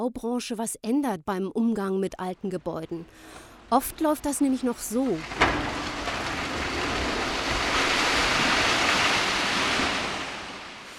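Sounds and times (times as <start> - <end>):
speech: 0.0 - 5.7
demolition of a former company building at a construction site: 2.7 - 10.9.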